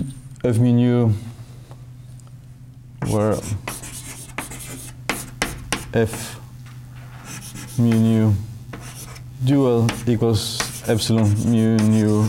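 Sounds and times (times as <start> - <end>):
speech: 0.4 - 1.3, 3.1 - 3.8, 6.0 - 6.4, 7.8 - 8.5, 9.4 - 12.2
writing on a board during a lecture: 3.0 - 6.3, 7.2 - 12.2.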